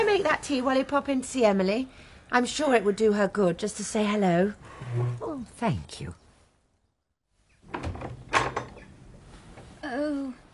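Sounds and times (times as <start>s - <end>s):
speech: 0.3s - 6.2s, 9.9s - 10.4s
door opening: 7.6s - 9.0s.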